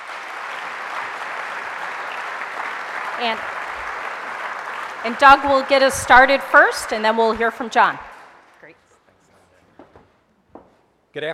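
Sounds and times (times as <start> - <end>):
audience applause at a Detroit Economic Club event: 0.0 - 8.5
speech: 3.2 - 3.6, 5.0 - 8.1, 11.1 - 11.3.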